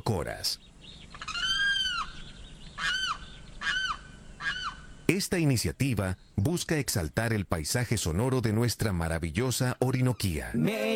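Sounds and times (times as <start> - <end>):
slightly hissy background: 0.0 - 10.9
speech: 0.1 - 1.2, 5.1 - 10.9
limpkin wailing calls: 0.3 - 5.1, 10.0 - 10.8.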